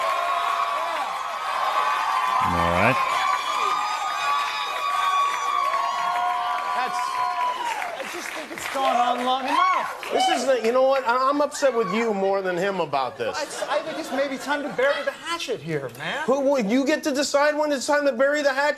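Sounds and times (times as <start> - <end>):
audience clapping: 0.0 - 11.0
audience cheering: 0.0 - 12.3
speech: 10.7 - 18.7.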